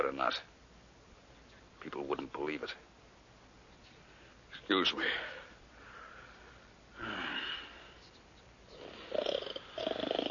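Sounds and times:
speech: 0.2s - 0.5s, 1.8s - 2.9s, 4.6s - 5.4s, 7.0s - 7.3s
man snoring: 8.7s - 10.2s.

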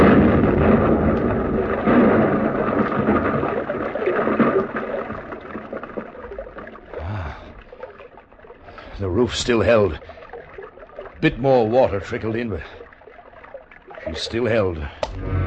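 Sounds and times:
low thud: 0.0s - 3.6s
blasting charge explosion in tunnel: 0.0s - 4.6s
speech: 9.3s - 10.2s, 11.2s - 12.8s, 14.1s - 15.3s.

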